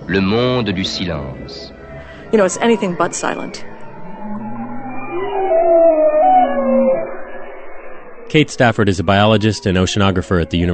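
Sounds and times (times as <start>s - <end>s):
speech: 0.1s - 3.7s, 8.3s - 10.7s
bearded seal underwater calls: 2.3s - 7.2s
bowhead whale underwater calls: 2.3s - 8.2s.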